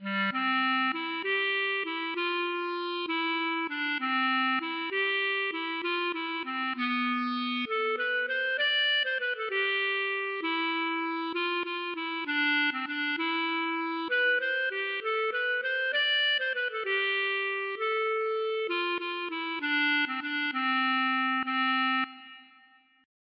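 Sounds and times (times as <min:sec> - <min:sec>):
waltz music: 0:00.0 - 0:22.4.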